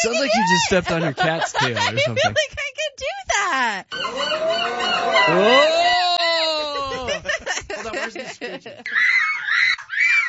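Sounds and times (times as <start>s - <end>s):
laughter: 0.0s - 2.4s, 3.9s - 9.0s
speech: 0.0s - 4.5s, 5.2s - 5.8s, 8.4s - 9.1s
children screaming at a daycare: 4.0s - 6.8s, 8.9s - 10.2s.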